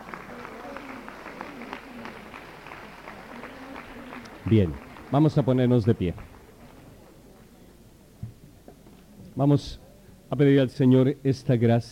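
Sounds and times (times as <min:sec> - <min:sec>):
audience applause: 0:00.0 - 0:07.5
faint murmur of voices: 0:00.0 - 0:11.8
speech: 0:04.4 - 0:06.3, 0:09.4 - 0:11.8.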